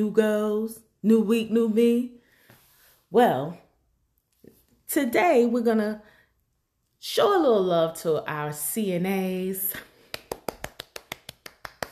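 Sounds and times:
speech: 0.0s - 2.2s, 3.1s - 3.6s, 4.9s - 6.1s, 7.0s - 9.9s
one person clapping: 10.0s - 11.9s.

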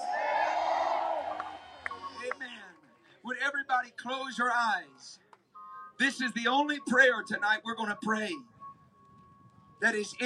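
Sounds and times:
audience shouting yes and cheering: 0.0s - 2.4s
speech: 3.9s - 5.2s, 6.0s - 8.5s, 9.8s - 10.2s.

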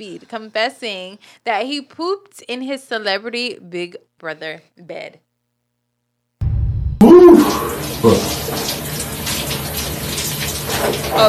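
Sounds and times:
speech: 0.0s - 5.3s, 7.0s - 8.9s, 10.8s - 11.2s
running water as a man washes himself: 7.2s - 11.2s.

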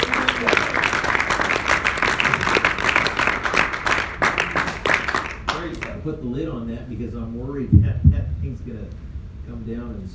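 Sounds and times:
audience clapping hands: 0.0s - 6.0s
speech: 6.0s - 10.1s.

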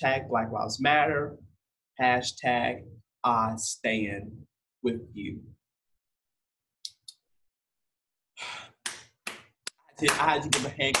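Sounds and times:
speech: 0.0s - 5.6s, 10.0s - 10.9s
breathy sounds: 8.4s - 8.8s
hand clapping: 8.7s - 10.9s.

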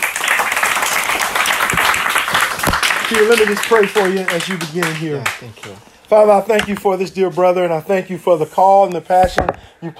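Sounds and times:
crowd applauding: 0.0s - 5.8s
speech: 3.1s - 9.9s.

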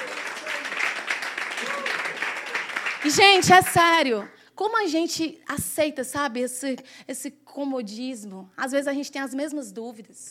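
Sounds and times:
crowd clapping hands: 0.0s - 4.3s
speech: 3.0s - 10.2s.

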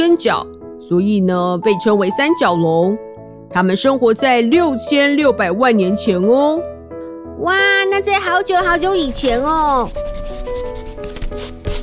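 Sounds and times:
speech: 0.0s - 6.7s, 7.4s - 10.4s
erasing a pencil drawing on paper: 8.4s - 11.8s.

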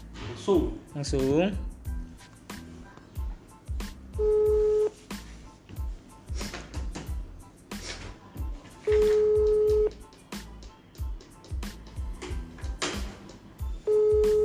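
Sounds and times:
rhythmic beat of music: 0.0s - 14.4s
speech: 0.4s - 1.7s
phone ringback tone: 4.2s - 5.0s, 8.9s - 9.9s, 13.9s - 14.4s.

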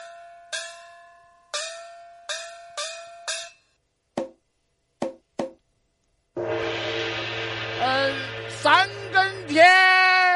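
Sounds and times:
loud sustained noisy wash: 6.4s - 10.0s
night watchman striking a gong: 6.4s - 10.2s.

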